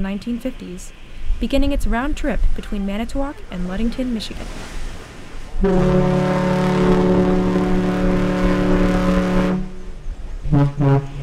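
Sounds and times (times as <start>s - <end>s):
speech: 0.0s - 4.8s, 5.6s - 7.3s
car ferry horn blasts: 5.6s - 11.2s.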